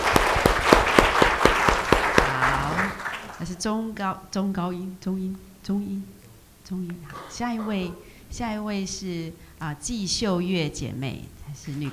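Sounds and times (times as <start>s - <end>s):
audience clapping in welcome: 0.0s - 3.6s
speech: 3.6s - 11.9s.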